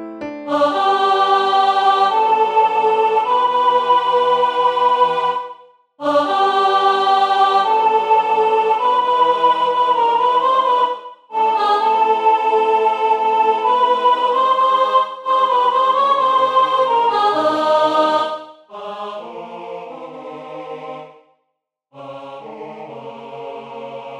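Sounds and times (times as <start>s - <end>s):
soprano voice: 0.5s - 18.2s.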